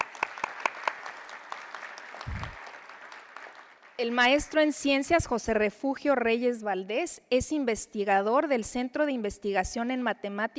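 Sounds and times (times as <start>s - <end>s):
audience clapping: 0.0s - 4.7s
speech: 4.0s - 10.5s.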